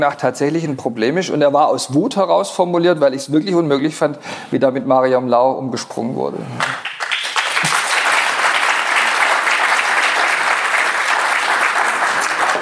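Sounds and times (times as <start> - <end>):
speech: 0.0 - 6.9
audience applause: 6.6 - 12.6.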